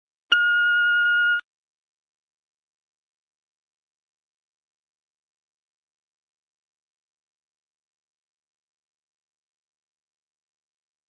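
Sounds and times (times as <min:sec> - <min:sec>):
beeps: 0:00.3 - 0:01.4.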